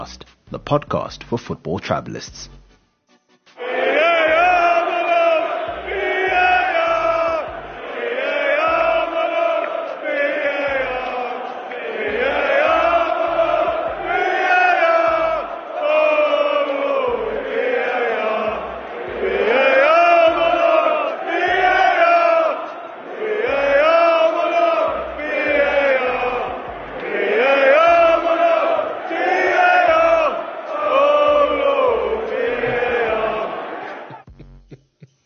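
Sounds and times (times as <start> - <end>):
speech: 0.0 - 2.6
football fans chanting in stadium: 3.6 - 34.3.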